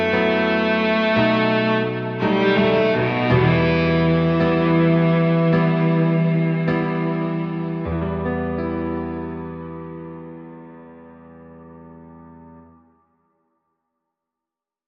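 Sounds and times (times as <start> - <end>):
cello: 0.0 - 11.2.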